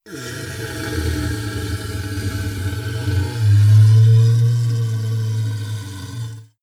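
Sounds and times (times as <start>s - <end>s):
low monster inhale: 0.0s - 6.6s.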